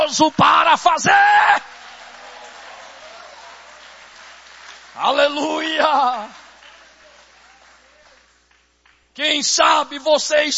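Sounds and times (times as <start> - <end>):
speech: 0.1 - 1.7, 5.0 - 6.4, 9.2 - 10.5
audience applause: 1.6 - 9.0.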